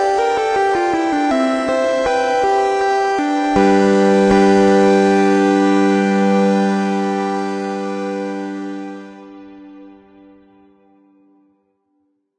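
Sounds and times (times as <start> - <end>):
8-bit electronica: 0.0 - 9.7.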